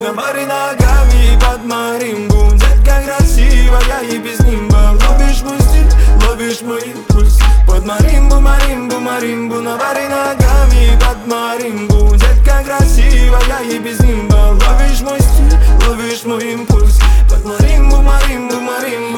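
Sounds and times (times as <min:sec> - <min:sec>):
marimba: 0:00.8 - 0:09.3, 0:10.4 - 0:19.1.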